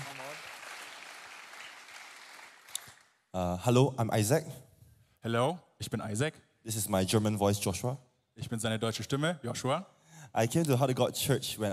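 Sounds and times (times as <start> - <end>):
audience applause: 0.0 - 3.1
speech: 3.4 - 4.6, 5.2 - 11.7.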